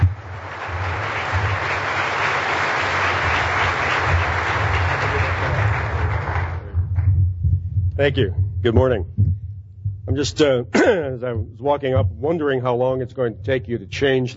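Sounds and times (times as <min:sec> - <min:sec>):
audience applause: 0:00.0 - 0:06.8
speech: 0:08.0 - 0:09.4, 0:10.1 - 0:14.3.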